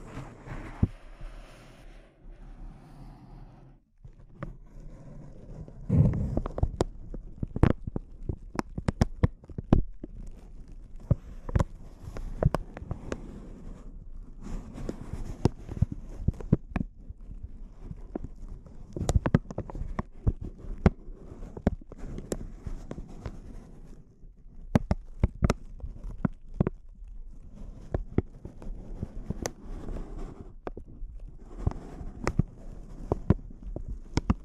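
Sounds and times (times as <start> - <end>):
intense close-up crinkles: 4.1 - 34.4.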